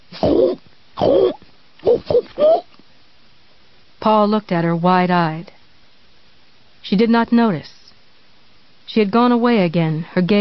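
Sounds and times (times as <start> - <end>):
woman imitating a pig with grunts and snorts: 0.1 - 2.7
speech: 0.3 - 2.7, 4.0 - 5.6, 6.8 - 7.7, 8.9 - 10.3.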